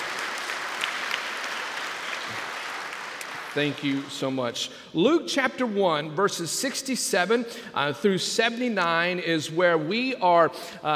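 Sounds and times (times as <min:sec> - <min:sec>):
round of applause: 0:00.0 - 0:04.2
speech: 0:03.6 - 0:10.9.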